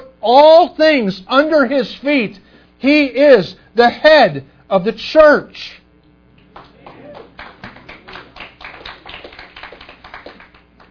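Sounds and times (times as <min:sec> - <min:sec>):
speech: 0:00.2 - 0:05.8
people clapping: 0:06.3 - 0:10.8.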